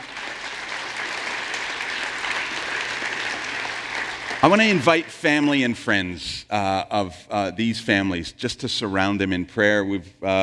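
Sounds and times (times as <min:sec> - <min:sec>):
crowd clapping: 0:00.0 - 0:05.7
speech: 0:04.4 - 0:10.4.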